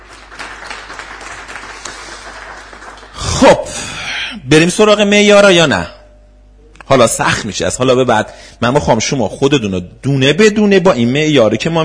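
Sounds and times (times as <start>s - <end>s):
audience applause in honour of a poet: 0.0s - 3.5s
speech: 4.5s - 6.0s, 6.9s - 11.8s.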